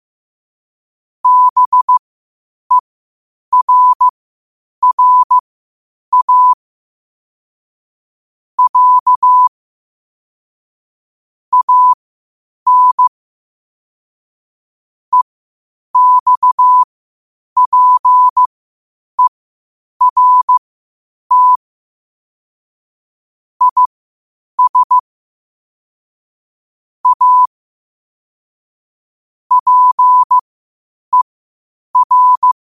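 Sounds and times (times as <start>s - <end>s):
morse code at 5 wpm: 1.2s - 2.0s, 3.5s - 4.1s, 4.8s - 5.4s, 6.1s - 6.6s, 8.6s - 9.5s, 11.5s - 12.0s, 12.7s - 13.1s, 16.0s - 16.9s, 17.6s - 18.5s, 20.0s - 20.6s, 21.3s - 21.6s, 23.6s - 23.9s, 24.6s - 25.0s, 27.0s - 27.5s, 29.5s - 30.4s, 32.0s - 32.6s.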